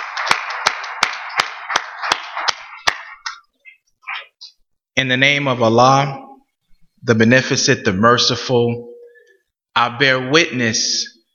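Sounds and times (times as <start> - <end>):
round of applause: 0.0 - 3.4
speech: 5.0 - 6.2, 7.0 - 8.9, 9.8 - 11.2.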